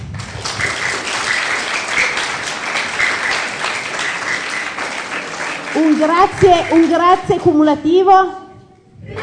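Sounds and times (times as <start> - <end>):
crowd applauding: 0.0 - 7.3
speech: 6.0 - 8.4.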